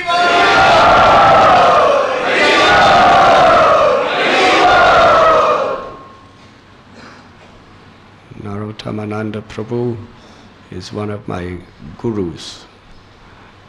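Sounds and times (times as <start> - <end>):
crowd cheering and shouting to welcome two guests at Radha Gopinath Temple: 0.0 - 6.1
speech: 9.0 - 12.7.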